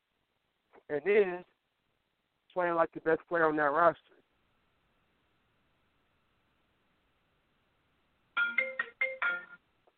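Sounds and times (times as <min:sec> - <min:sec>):
speech: 0:00.9 - 0:01.5, 0:02.6 - 0:04.2
work phone ringtone: 0:08.4 - 0:09.6.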